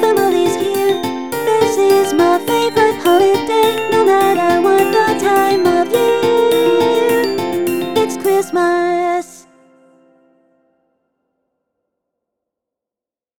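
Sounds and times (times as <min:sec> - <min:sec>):
sleigh bells: 0:00.0 - 0:09.8.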